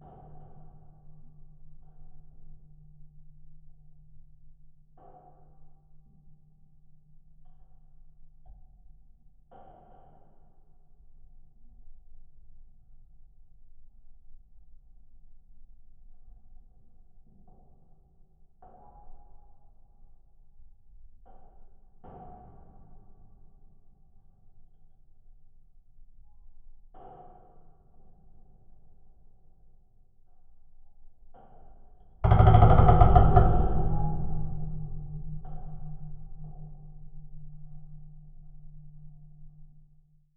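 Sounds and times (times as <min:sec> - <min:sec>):
harbor bridge moving recorded with geophone: 0:32.2 - 0:40.0.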